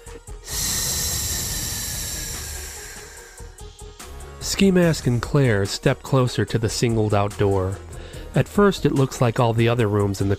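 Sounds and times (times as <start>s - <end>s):
loud breathy hiss: 0.0s - 3.8s
speech: 4.4s - 10.3s.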